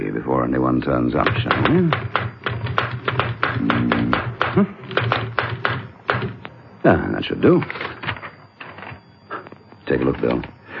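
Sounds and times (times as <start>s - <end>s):
speech: 0.3s - 2.2s, 3.6s - 4.8s, 6.8s - 7.9s, 9.9s - 10.5s
typing on a typewriter: 1.2s - 6.4s, 7.6s - 9.0s
murmured voice: 3.6s - 4.9s.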